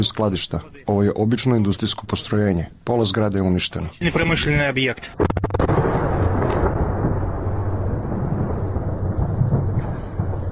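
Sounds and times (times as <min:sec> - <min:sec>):
speech: 0:00.0 - 0:05.3
missile strike explosion: 0:05.2 - 0:10.5.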